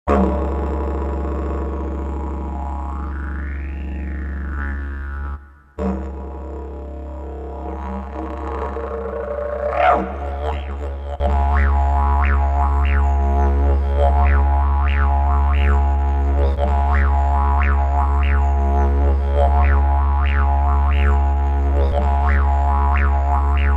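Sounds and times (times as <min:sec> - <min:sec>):
Native didgeridoo: 0:00.0 - 0:23.7.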